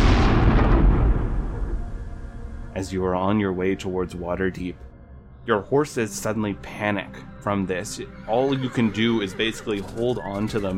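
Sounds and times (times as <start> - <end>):
deafening boom: 0.0 - 2.7
speech: 2.8 - 4.9, 5.5 - 10.7.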